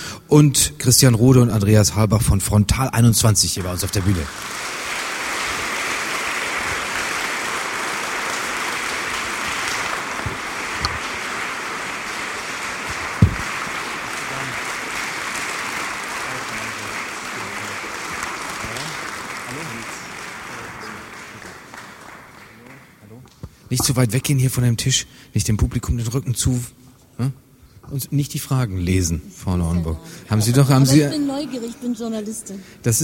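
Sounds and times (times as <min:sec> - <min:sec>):
speech: 0:00.3 - 0:04.8, 0:23.9 - 0:33.0
audience applause welcoming nominees on stage: 0:03.5 - 0:23.0.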